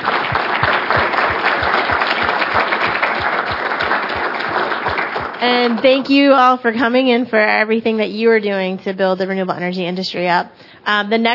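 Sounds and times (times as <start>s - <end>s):
audience round of applause: 0.0s - 6.4s
speech: 5.4s - 11.3s.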